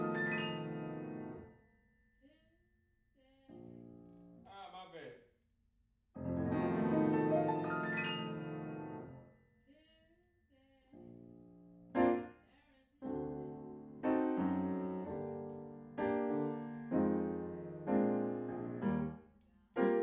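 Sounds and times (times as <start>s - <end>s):
piano in a room: 0.0s - 1.6s, 6.2s - 9.3s, 11.0s - 12.4s, 13.0s - 20.0s.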